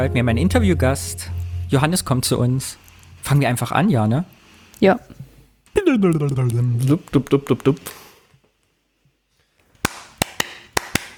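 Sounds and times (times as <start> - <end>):
speech: 0.0 - 5.2, 5.8 - 8.0
hand clap as an editing sync marker: 9.8 - 11.1.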